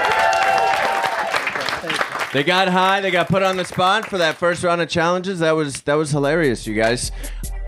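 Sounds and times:
audience applause: 0:00.0 - 0:04.7
speech: 0:02.3 - 0:07.5.

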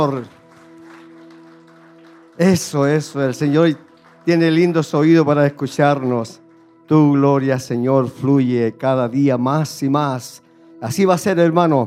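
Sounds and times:
speech: 0:00.0 - 0:00.4, 0:02.4 - 0:11.8
audience applauding: 0:00.0 - 0:06.1.

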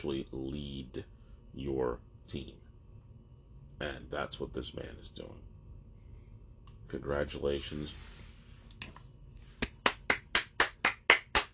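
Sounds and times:
speech: 0:00.0 - 0:02.6, 0:03.8 - 0:05.5, 0:06.9 - 0:08.2
lone person clapping: 0:09.6 - 0:11.5.

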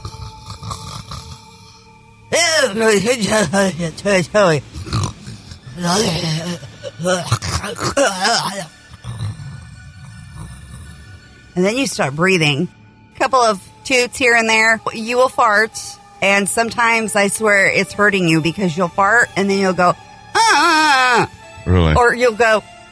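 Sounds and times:
person imitating snoring: 0:00.0 - 0:01.9, 0:04.7 - 0:11.4, 0:21.7 - 0:22.0
speech: 0:02.7 - 0:04.8, 0:05.8 - 0:08.8, 0:11.6 - 0:20.0, 0:20.6 - 0:22.7.

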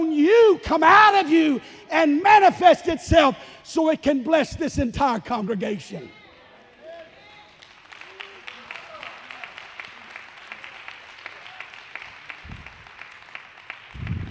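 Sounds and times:
speech: 0:00.5 - 0:06.2
audience clapping hands: 0:07.4 - 0:14.2.

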